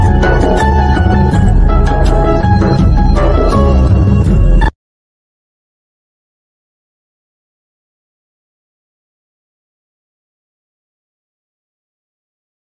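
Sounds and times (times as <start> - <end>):
ringtone background music: 0.0 - 4.7.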